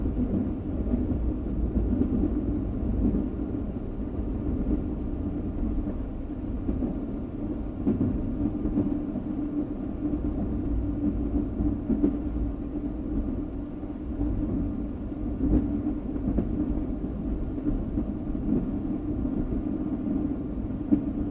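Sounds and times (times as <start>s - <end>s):
train moving on tracks: 0.0s - 21.3s.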